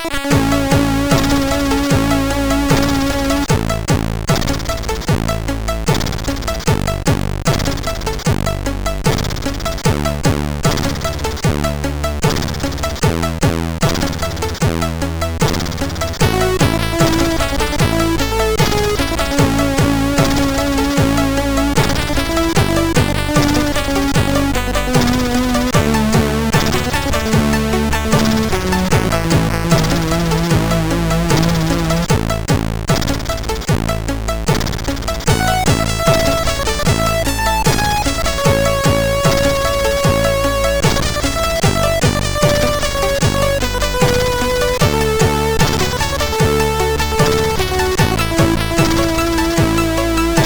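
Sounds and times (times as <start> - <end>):
SID chip stereo menu music: 0.1 - 50.4.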